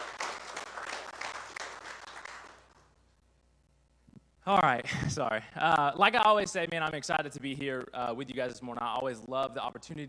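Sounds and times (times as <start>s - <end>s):
audience hand clapping: 0.0s - 2.9s
speech: 4.5s - 10.0s.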